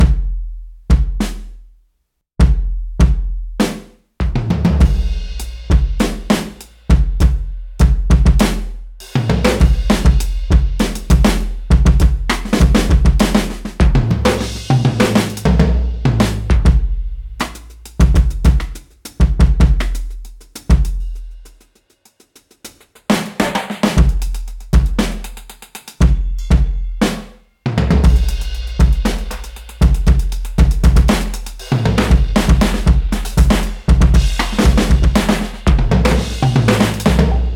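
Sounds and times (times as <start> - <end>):
drum solo: 0.0 - 1.6, 2.4 - 37.5.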